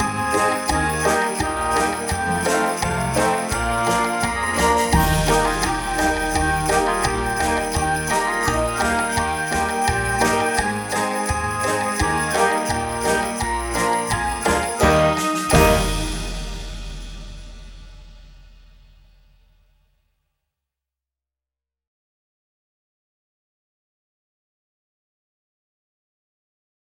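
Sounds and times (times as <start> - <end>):
Jesus jingle: 0.0 - 18.8.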